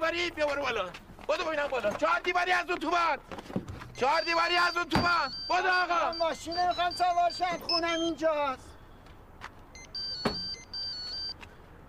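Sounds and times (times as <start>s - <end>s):
speech: 0.1s - 8.7s
phone ringing with a steady high electronic tone: 4.0s - 8.2s, 9.7s - 11.4s.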